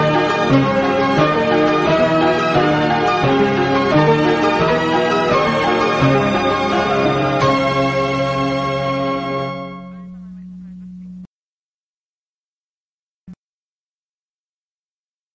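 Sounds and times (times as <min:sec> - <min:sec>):
instrumental music: 0:00.0 - 0:10.4.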